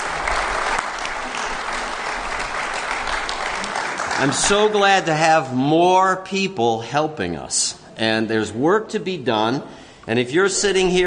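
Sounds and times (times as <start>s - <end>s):
church congregation clapping at Sunday morning worship: 0.0s - 5.4s
speech: 4.2s - 11.0s.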